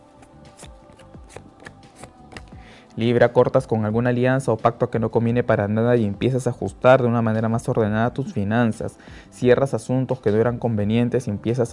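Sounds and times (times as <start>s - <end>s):
tarot cards shuffled by hand: 0.0s - 2.5s
speech: 3.0s - 11.7s.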